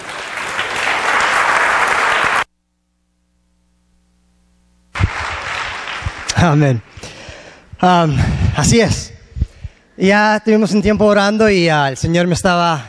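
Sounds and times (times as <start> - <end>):
loud audience applause: 0.0 - 2.5, 5.0 - 6.8
speech: 6.4 - 7.2, 7.8 - 9.1, 10.0 - 12.8.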